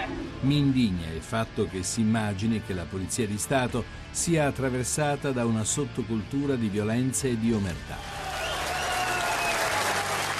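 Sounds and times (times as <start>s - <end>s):
speech: 0.4s - 8.2s
applause: 8.1s - 10.3s.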